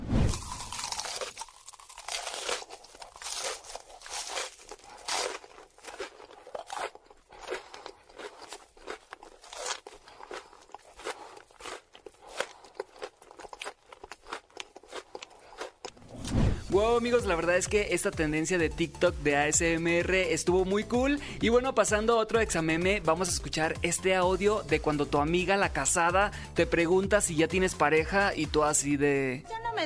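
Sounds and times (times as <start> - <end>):
crunchy fried cheese balls being eaten: 0.3 - 16.0
speech: 16.8 - 29.8.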